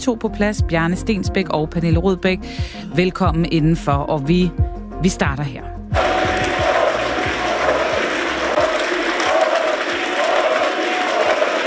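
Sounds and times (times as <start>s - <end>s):
speech: 0.0s - 5.8s
crowd applauding at party rally: 5.9s - 11.6s.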